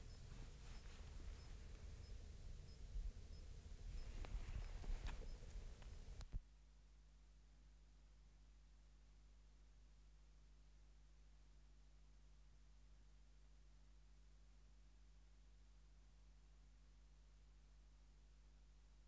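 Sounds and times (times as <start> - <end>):
great green bush-cricket singing high fast pulsed trills: 0.0 - 6.3.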